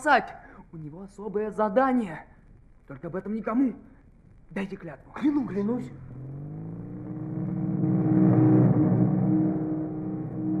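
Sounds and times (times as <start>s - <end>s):
speech: 0.0s - 2.3s, 2.9s - 3.9s, 4.5s - 6.5s
group of motorcycles rolling past: 5.8s - 10.5s.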